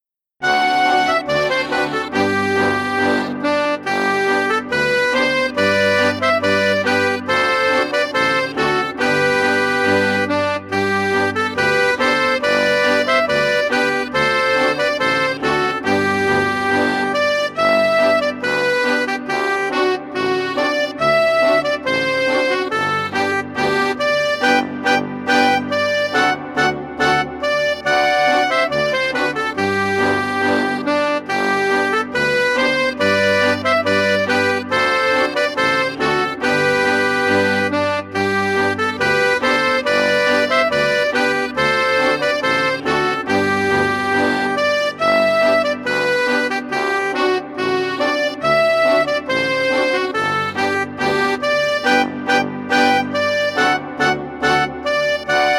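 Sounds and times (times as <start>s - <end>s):
children's polka: 0.4s - 55.5s.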